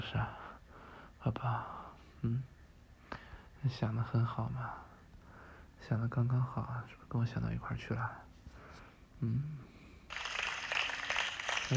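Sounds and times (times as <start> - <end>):
speech: 1.2 - 2.5, 3.6 - 4.9, 5.8 - 8.3, 9.2 - 9.6
applause: 10.1 - 11.7.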